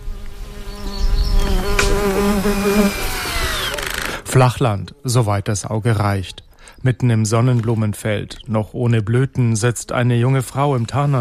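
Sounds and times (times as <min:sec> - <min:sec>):
military drone buzzing: 0:00.0 - 0:04.3
speech: 0:04.4 - 0:11.1.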